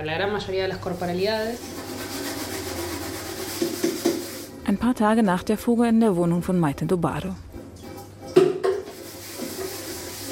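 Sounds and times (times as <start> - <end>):
speech: 0.0 - 2.2, 4.7 - 7.5
dishes or utensils clinking: 7.6 - 9.0.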